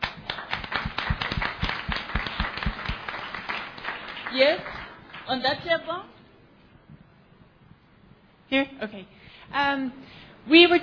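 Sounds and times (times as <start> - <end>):
audience clapping: 0.0 - 5.6
speech: 4.4 - 6.2, 8.5 - 10.8.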